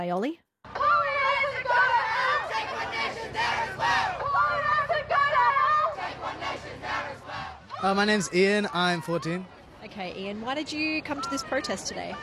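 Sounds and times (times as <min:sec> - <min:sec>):
speech: 0:00.0 - 0:00.4, 0:07.8 - 0:12.2
people shouting: 0:00.7 - 0:09.4
protest crowd chattering: 0:00.7 - 0:12.2.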